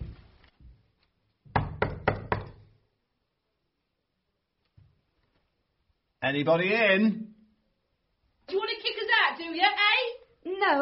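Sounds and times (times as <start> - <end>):
knocking on a door: 1.5 - 2.7
speech: 6.3 - 7.3, 8.5 - 10.8.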